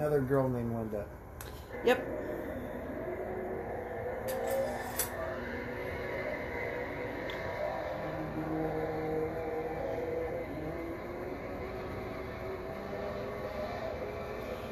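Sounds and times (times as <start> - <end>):
speech: 0.0 - 2.9, 8.4 - 9.0
car engine straining in low gear in the film Evil Dead 2: 3.6 - 14.7.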